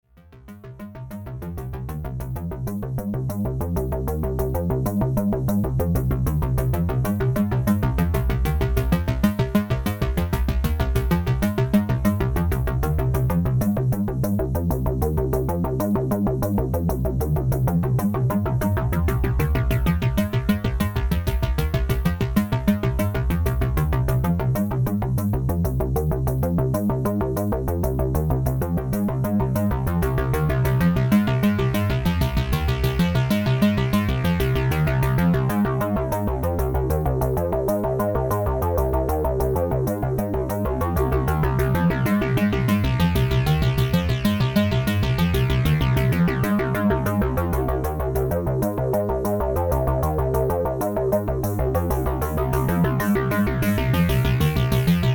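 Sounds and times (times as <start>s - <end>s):
double filter synth sequence: 0.5s - 55.1s.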